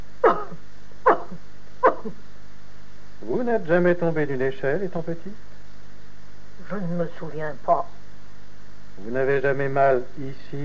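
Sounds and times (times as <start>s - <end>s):
patient coughing: 0.2s - 1.2s
speech: 2.0s - 2.2s, 3.4s - 5.5s, 6.7s - 8.0s, 9.0s - 10.6s.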